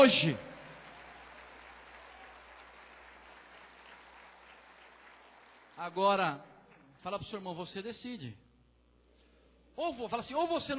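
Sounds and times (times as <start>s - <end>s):
speech: 0.0s - 0.5s, 5.8s - 8.4s, 9.8s - 10.7s
audience applauding: 0.0s - 6.0s.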